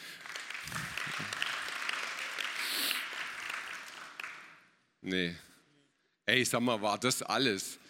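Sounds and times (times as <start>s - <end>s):
audience applause: 0.0s - 4.6s
speech: 5.0s - 5.5s, 6.3s - 7.8s.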